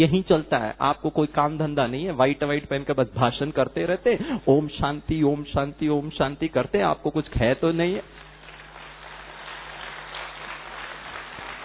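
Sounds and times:
speech: 0.0 - 8.2
audience clapping: 8.1 - 11.6.

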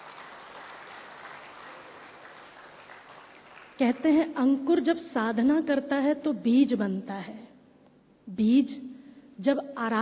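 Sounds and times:
applause at a gathering honouring and welcoming a guest: 0.0 - 4.0
speech: 3.8 - 7.5, 8.3 - 9.9.

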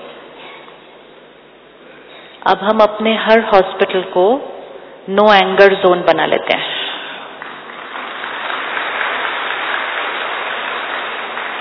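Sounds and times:
speech: 2.4 - 6.7
crowd applauding: 7.3 - 11.5.

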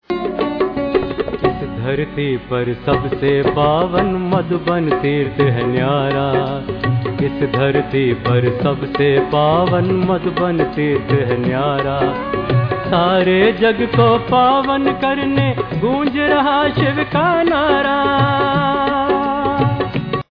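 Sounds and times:
devotional music: 0.1 - 20.2.

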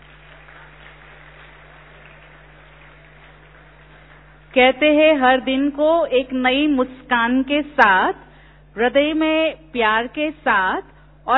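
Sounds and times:
audience clapping: 0.0 - 5.1
speech: 4.6 - 11.3.

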